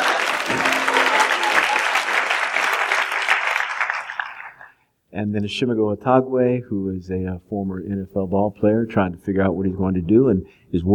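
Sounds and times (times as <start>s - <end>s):
audience applause: 0.0s - 4.7s
speech: 5.2s - 10.9s.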